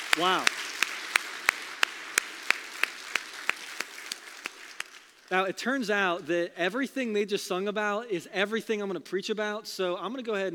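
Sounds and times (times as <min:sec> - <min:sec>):
audience applauding the choir: 0:00.0 - 0:05.3
speech: 0:00.2 - 0:00.7, 0:05.3 - 0:10.5.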